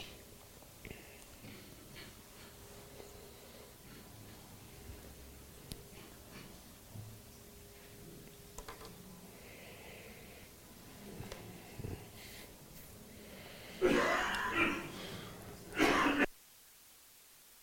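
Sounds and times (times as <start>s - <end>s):
people coughing in the audience: 13.8s - 16.3s.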